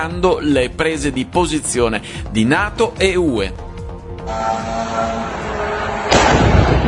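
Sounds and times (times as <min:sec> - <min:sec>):
speech: 0:00.0 - 0:03.6, 0:04.3 - 0:05.5
Russian drone crashing on a residential building roof: 0:04.5 - 0:06.8.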